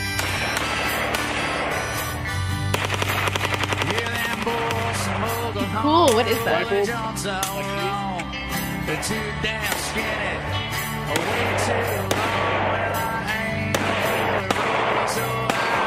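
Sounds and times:
rapid gunfire from a Tulsa group's firearms arsenal: 0:00.2 - 0:05.6, 0:09.6 - 0:10.3, 0:11.1 - 0:15.8
speech: 0:06.2 - 0:07.9, 0:08.9 - 0:12.4.

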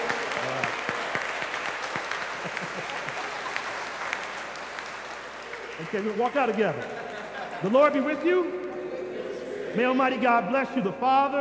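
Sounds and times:
audience applause: 0:00.0 - 0:07.7
laughter: 0:01.9 - 0:04.4, 0:05.8 - 0:09.8
speech: 0:05.9 - 0:07.0, 0:07.6 - 0:08.6, 0:09.8 - 0:11.3.

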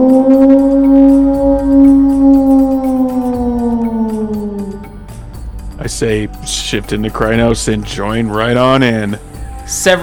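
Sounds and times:
person imitating a wolf howl: 0:00.0 - 0:05.2
speech: 0:06.0 - 0:10.0.

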